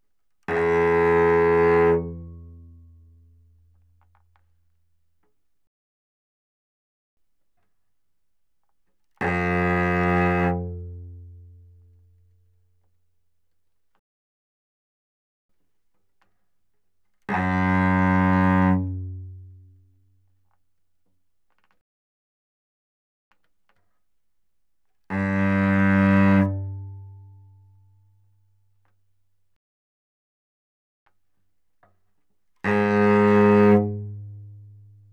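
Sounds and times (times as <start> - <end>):
cello bowed fortissimo on the C string: 0.5 - 3.2, 9.2 - 11.7, 17.3 - 19.8, 25.1 - 27.8, 32.6 - 35.1.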